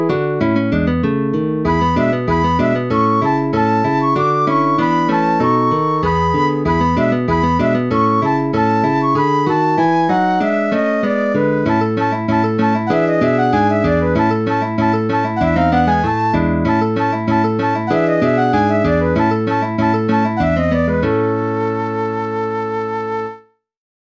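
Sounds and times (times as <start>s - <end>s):
guitar in a duet in A major: 0.0s - 23.2s
flute in a duet in A major: 1.7s - 23.6s.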